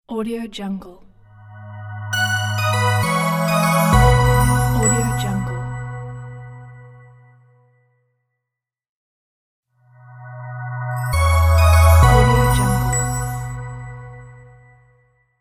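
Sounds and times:
christmas audio logo: 1.3 - 7.3, 10.0 - 14.8.

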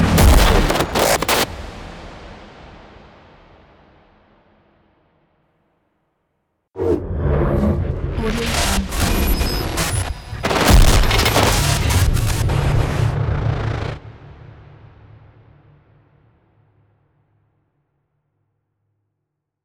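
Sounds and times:
cinematic glitches: 0.0 - 1.5, 7.0 - 14.1.

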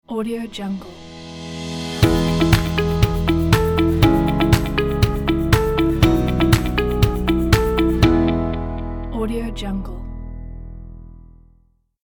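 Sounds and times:
corporate logo jingle: 1.6 - 9.3.

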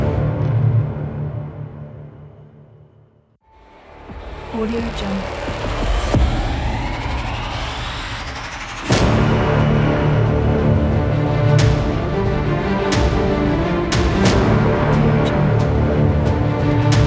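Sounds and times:
powerful cinematic trailer music: 0.0 - 17.0.

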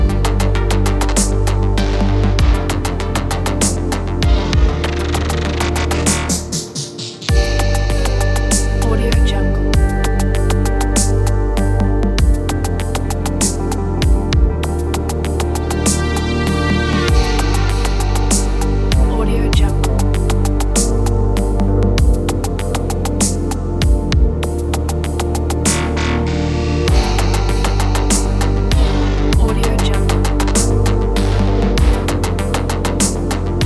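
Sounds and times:
relaxing electronic ambient music: 0.0 - 33.6.

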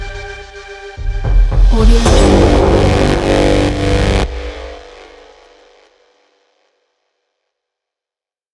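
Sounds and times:
cyberpunk trailer music: 1.0 - 5.5.

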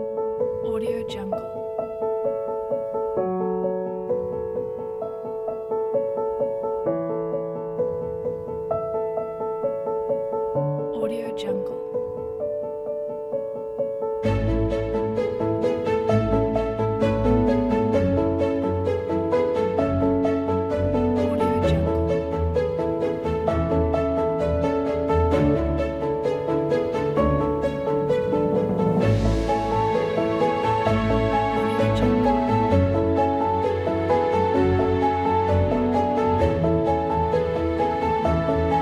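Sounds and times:
inspiring piano: 0.0 - 38.8
strings: 14.2 - 38.8.

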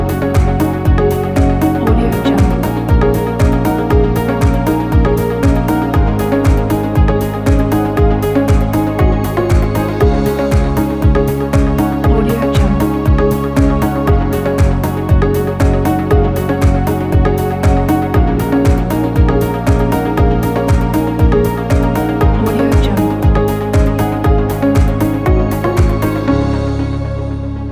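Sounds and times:
inspiring corporate ambient music: 0.0 - 27.6.

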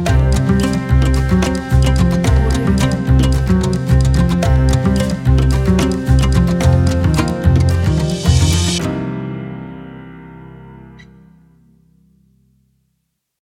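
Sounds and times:
funk music: 0.0 - 10.6.

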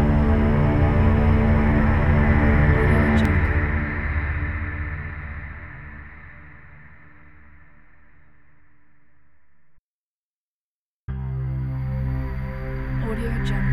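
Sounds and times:
dark atmospheric soundscape: 0.0 - 9.6, 11.1 - 13.7.

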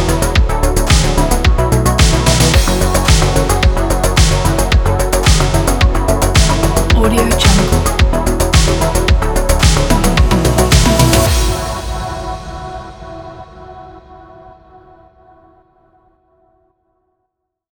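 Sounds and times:
synthwave background music: 0.0 - 13.3.

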